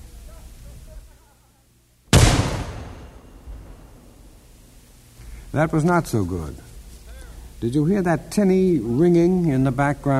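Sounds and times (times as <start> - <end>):
cannon firing a gunpowder shot: 2.1 - 4.4
low, quiet rumble: 2.2 - 4.6
speech: 5.5 - 6.6, 7.6 - 10.1.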